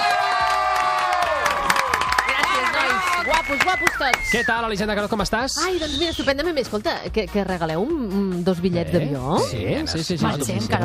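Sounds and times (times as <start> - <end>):
audience applause and cheering: 0.0 - 4.7
speech: 3.5 - 10.8.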